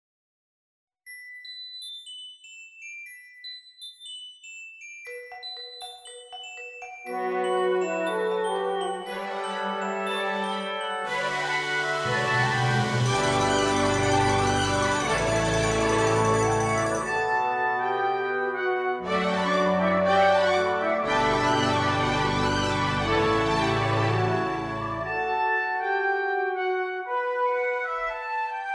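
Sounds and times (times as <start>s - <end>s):
fanfare: 7.1s - 28.6s.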